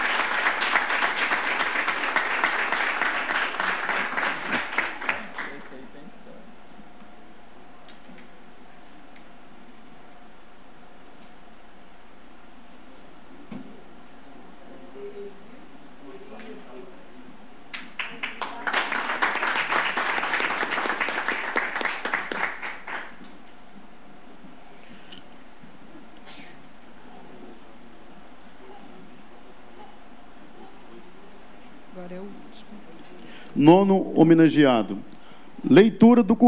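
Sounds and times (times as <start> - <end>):
audience applause: 0.0 - 5.7, 17.7 - 23.2
speech: 33.6 - 36.4.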